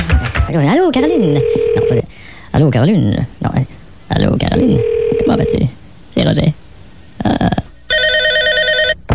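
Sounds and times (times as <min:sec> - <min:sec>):
telephone ringing: 0:00.0 - 0:02.1, 0:04.5 - 0:05.6, 0:07.8 - 0:09.0
speech: 0:00.5 - 0:06.6, 0:07.2 - 0:07.6.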